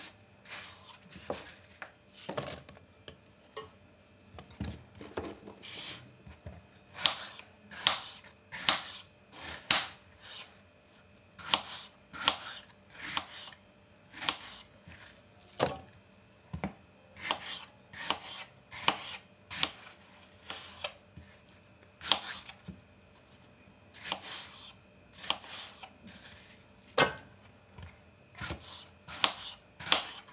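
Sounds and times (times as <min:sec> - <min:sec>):
knife chopping apples on a board for a compote: 0:05.1 - 0:10.0, 0:11.4 - 0:14.6, 0:16.6 - 0:21.3, 0:22.0 - 0:22.5, 0:24.0 - 0:25.9, 0:27.0 - 0:27.4, 0:28.4 - 0:30.3.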